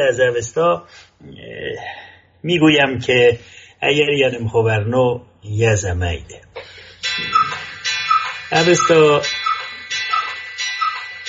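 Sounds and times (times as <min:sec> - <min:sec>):
speech: 0:00.0 - 0:07.4, 0:08.5 - 0:09.4
clock ticking: 0:06.9 - 0:11.2.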